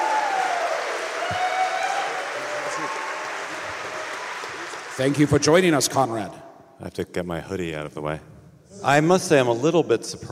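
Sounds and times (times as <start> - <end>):
audience applause and cheering: 0.0 - 5.7
speech: 5.0 - 10.3.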